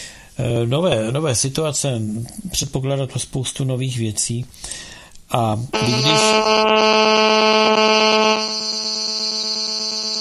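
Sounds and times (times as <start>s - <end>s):
speech: 0.4s - 8.4s
telephone buzzing: 5.8s - 10.2s.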